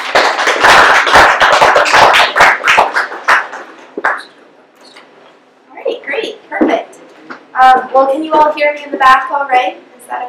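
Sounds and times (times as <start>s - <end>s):
audience applause welcoming a speaker at a talk: 0.0s - 4.3s
speech: 8.0s - 10.2s.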